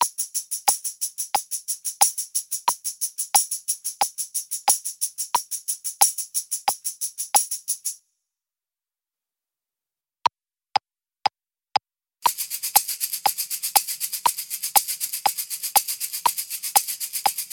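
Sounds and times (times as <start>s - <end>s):
shakers playing accented sixteenth notes: 0.0s - 8.0s, 12.2s - 17.5s.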